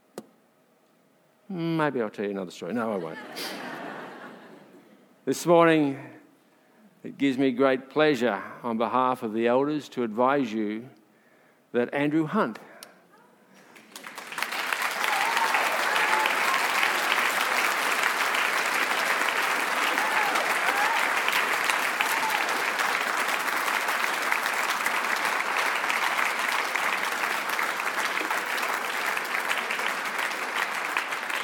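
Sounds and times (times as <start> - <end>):
speech: 1.5 - 3.7, 5.3 - 6.2, 7.0 - 11.0, 11.7 - 12.7
laughter: 2.8 - 4.8
church congregation applauding announcement of a new lead pastor: 13.6 - 31.4.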